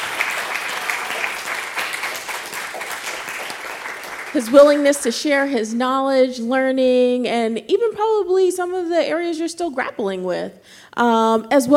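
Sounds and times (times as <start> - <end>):
round of applause: 0.0 - 5.0
speech: 4.4 - 11.7.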